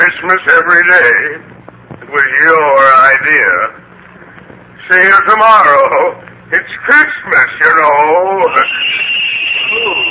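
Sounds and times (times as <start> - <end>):
speech: 0.2 - 1.5, 2.1 - 3.8, 4.9 - 10.1
bells ringing: 8.5 - 10.1.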